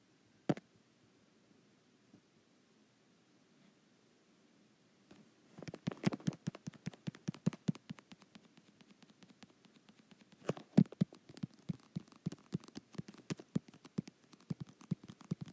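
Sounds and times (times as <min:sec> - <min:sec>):
fingertips tapping a touch screen: 0:05.6 - 0:15.5.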